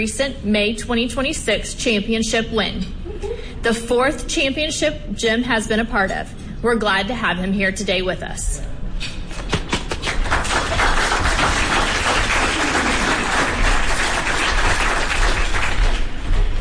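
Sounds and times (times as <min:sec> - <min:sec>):
speech: 0:00.0 - 0:09.1
round of applause: 0:10.0 - 0:16.3.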